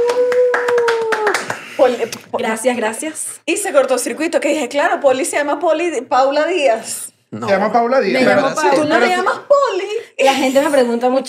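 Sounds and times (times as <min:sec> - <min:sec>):
hand claps: 0:00.0 - 0:02.3
speech: 0:01.8 - 0:11.2.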